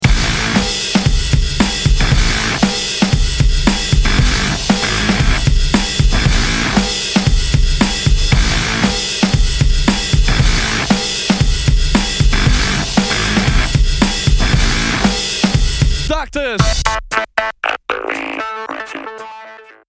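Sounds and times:
music beat: 0.0s - 19.8s.

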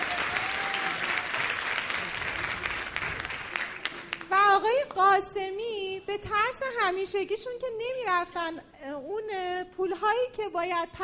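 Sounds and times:
crowd clapping: 0.0s - 5.0s
speech: 5.0s - 11.0s.

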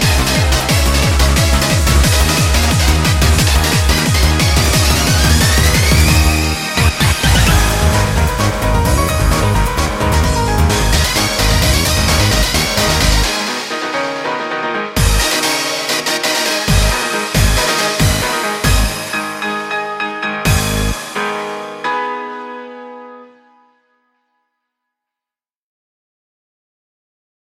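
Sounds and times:
nu rave music: 0.0s - 21.6s.

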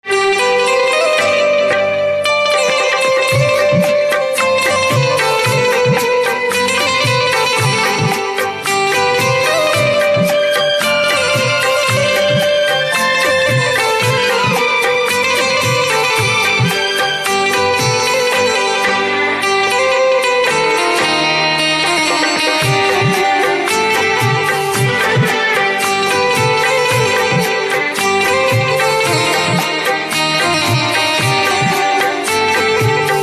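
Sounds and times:
banjo instrumental ringtone: 0.2s - 33.2s.

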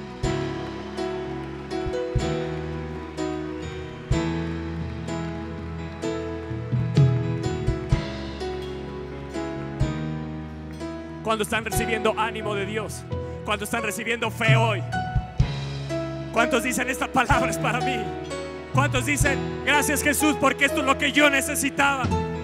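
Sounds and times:
sustained keyboard-like chords: 0.0s - 22.4s
audience applauding: 0.1s - 7.5s
speech: 11.3s - 15.0s, 16.4s - 22.3s.

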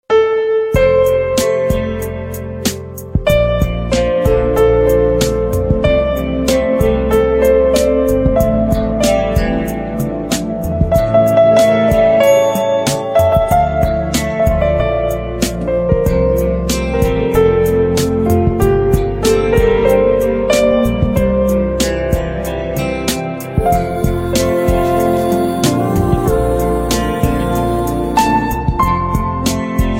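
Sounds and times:
piano: 0.0s - 29.9s.

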